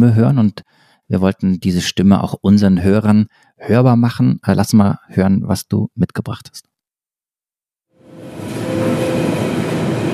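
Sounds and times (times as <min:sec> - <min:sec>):
speech: 0:00.0 - 0:06.7
Berlin commuter train arriving at station: 0:08.0 - 0:10.1
faint high whine: 0:08.0 - 0:10.1.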